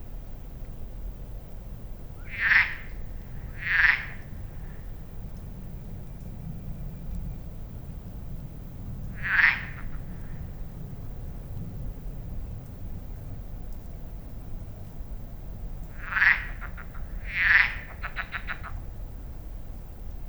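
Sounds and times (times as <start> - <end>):
frog croaks at a lake echoing off the surrounding hills: 2.2 - 5.1, 9.0 - 10.8, 15.8 - 19.2.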